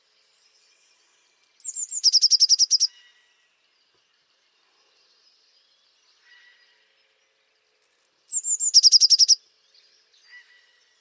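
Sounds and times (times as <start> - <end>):
Eurasian blue tit calls with buzzy trill: 1.6 - 3.0, 8.3 - 9.4.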